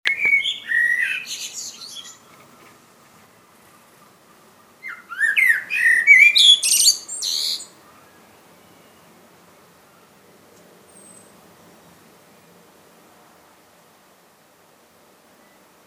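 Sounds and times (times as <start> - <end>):
common blackbird singing: 0.1 - 9.2, 10.9 - 11.4.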